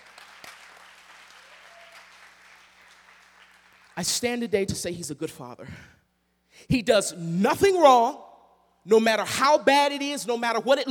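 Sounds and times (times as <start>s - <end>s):
audience applause: 0.0s - 4.0s
speech: 4.0s - 6.0s, 6.7s - 10.8s.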